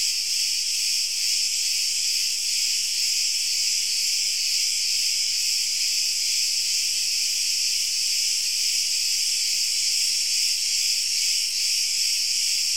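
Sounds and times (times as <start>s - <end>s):
crickets chirping: 0.0s - 12.7s.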